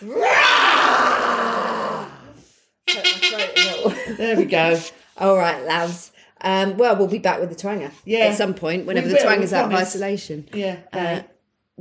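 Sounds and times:
speech: 0.0s - 0.3s, 4.1s - 11.8s
people imitating a lion's roar: 0.0s - 2.5s
laughter and chatter: 3.6s - 4.7s.

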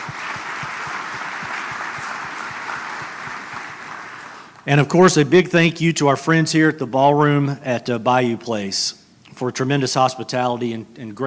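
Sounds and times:
audience applause: 0.0s - 4.6s
speech: 4.7s - 11.2s.

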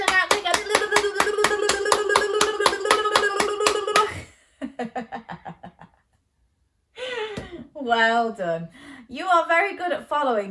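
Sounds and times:
quick hand clapping in a children's follow-along game: 0.0s - 4.2s
speech: 7.9s - 10.4s.

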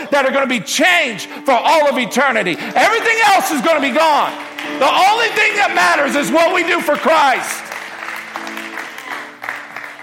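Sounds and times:
speech: 0.2s - 7.7s
audience clapping: 2.4s - 10.0s.

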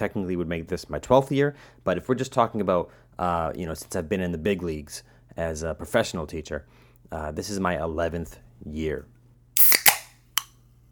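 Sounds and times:
speech: 0.0s - 9.2s
seltzer can opening with a pop: 9.6s - 10.6s.

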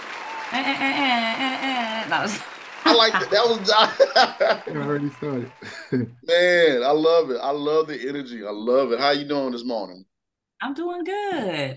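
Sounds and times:
audience clapping: 0.0s - 7.0s
voiced cheer: 0.0s - 9.8s
laughter: 0.5s - 9.8s
speech: 0.5s - 11.7s.

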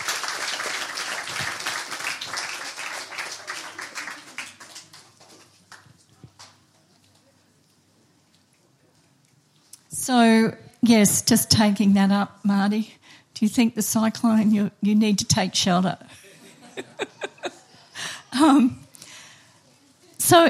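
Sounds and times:
audience applauding: 0.0s - 7.2s
speech: 10.1s - 16.2s, 18.4s - 18.8s, 20.3s - 20.4s
laughter: 16.2s - 18.5s.

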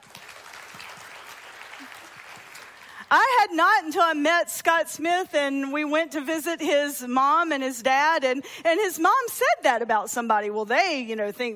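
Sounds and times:
audience clapping: 0.0s - 3.1s
speech: 3.1s - 11.5s.

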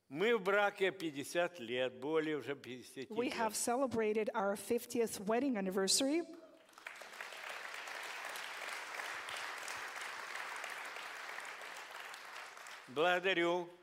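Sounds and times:
speech: 0.1s - 6.4s, 13.0s - 13.8s
audience applause: 6.6s - 13.3s.

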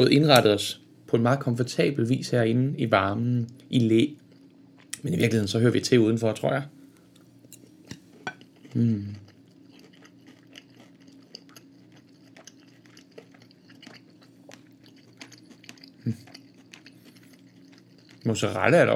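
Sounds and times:
speech: 0.0s - 4.2s, 5.0s - 6.8s, 8.7s - 9.2s, 18.3s - 18.9s
person chewing food: 7.6s - 18.4s.

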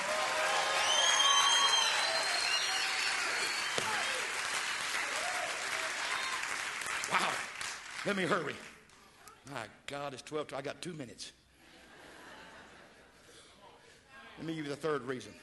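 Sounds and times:
audience cheering and applause: 0.0s - 8.2s
speech: 8.0s - 8.7s, 9.5s - 11.4s, 14.4s - 15.4s
laughter: 11.6s - 13.3s.

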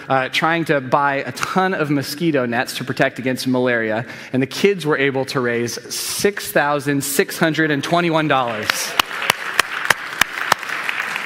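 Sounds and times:
speech: 0.1s - 9.3s
audience applause: 8.4s - 11.2s
sharp loud claps on a steady beat: 8.5s - 11.2s.

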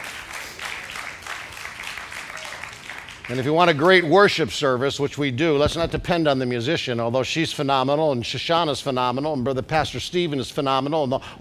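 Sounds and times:
audience clapping: 0.0s - 4.1s
speech: 3.3s - 11.3s.

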